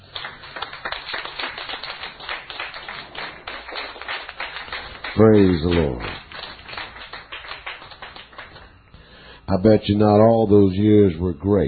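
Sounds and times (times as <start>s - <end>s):
audience clapping and cheering: 0.0s - 8.9s
speech: 5.2s - 6.2s, 9.5s - 11.6s.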